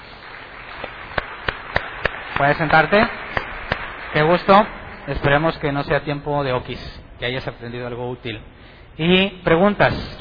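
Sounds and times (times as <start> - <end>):
steady hiss: 0.0 - 10.1
sparse audience hand claps: 0.2 - 5.4
speech: 2.4 - 3.2, 4.1 - 10.1.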